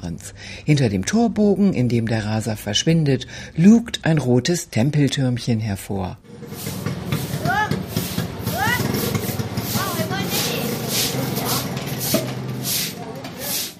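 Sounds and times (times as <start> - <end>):
speech: 0.0 - 6.8
broom sweeping a courtyard: 6.3 - 13.7
voices chattering and calling: 6.8 - 13.7.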